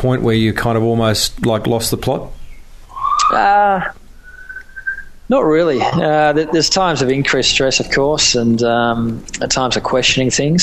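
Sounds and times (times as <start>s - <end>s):
speech: 0.0s - 2.4s, 3.3s - 4.0s, 5.3s - 10.6s
siren wailing: 2.9s - 5.1s.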